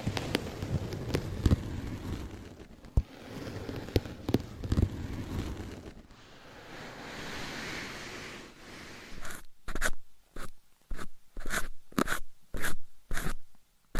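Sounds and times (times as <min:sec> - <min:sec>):
dense rumbling rub: 0:00.0 - 0:09.4
soft steady brushing: 0:00.0 - 0:11.6
crisp scratchy strokes: 0:00.0 - 0:13.4.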